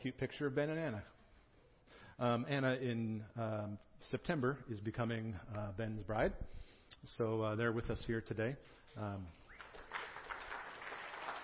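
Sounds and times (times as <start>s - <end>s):
speech: 0.0s - 1.2s, 1.9s - 9.4s
crowd clapping: 9.5s - 11.4s.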